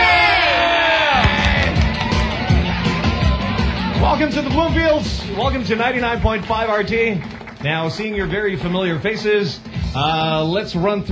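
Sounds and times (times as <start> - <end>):
audience cheering a band being introduced on stage: 0.0 - 9.1
audience clapping for a band introduction: 1.2 - 9.6
speech: 4.2 - 11.1.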